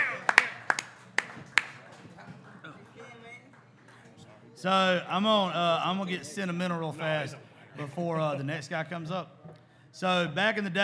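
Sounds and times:
scattered hand claps: 0.0 - 4.2
quiet murmur of voices: 0.0 - 10.2
speech: 4.6 - 9.4, 10.0 - 10.8.

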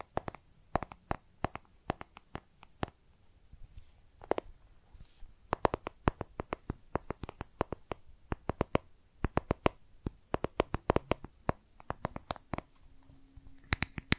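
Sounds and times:
makeup tapping: 0.0 - 3.0, 5.5 - 14.1
faint low hum: 0.0 - 14.1.

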